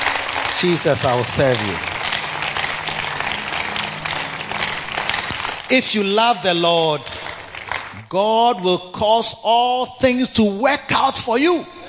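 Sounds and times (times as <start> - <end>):
audience hand clapping: 0.0 - 8.7
speech: 0.6 - 1.9, 5.7 - 7.2, 8.1 - 11.8.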